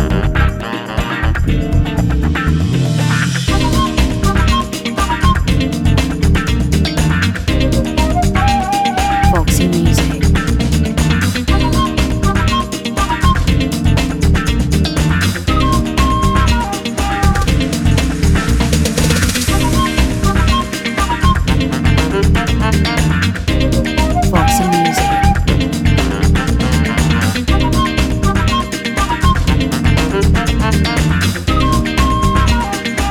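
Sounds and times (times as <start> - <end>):
funky music: 0.0 - 33.0.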